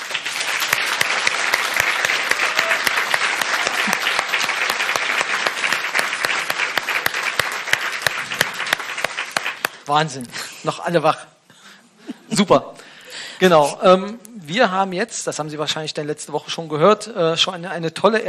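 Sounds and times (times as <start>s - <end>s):
audience applause: 0.0s - 9.9s
speech: 9.9s - 11.3s, 12.4s - 12.8s, 13.4s - 18.2s.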